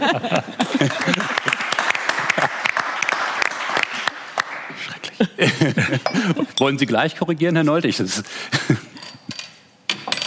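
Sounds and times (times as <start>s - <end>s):
speech: 0.0s - 1.2s, 5.6s - 8.9s
laughter: 0.0s - 2.8s, 4.8s - 6.6s
audience applause: 0.6s - 4.9s.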